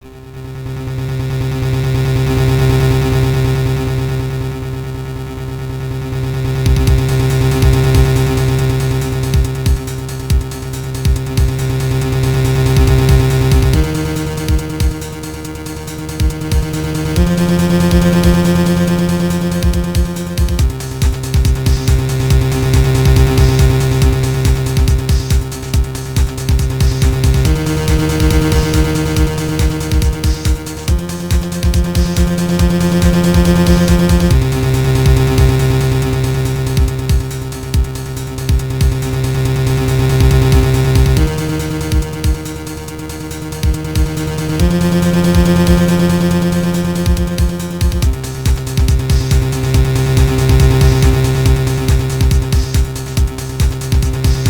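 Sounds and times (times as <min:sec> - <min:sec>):
suspense music: 0:00.0 - 0:54.4.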